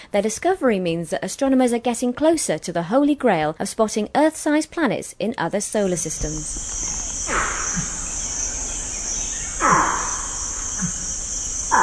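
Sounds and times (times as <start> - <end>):
speech: 0.1 - 8.0
high-pitched drone of crickets and insects: 5.8 - 11.8
putty-nosed monkey calls: 5.8 - 11.8.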